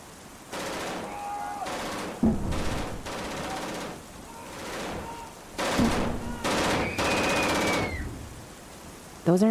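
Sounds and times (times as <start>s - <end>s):
rapid gunfire bursts as people shoot: 0.5s - 7.9s.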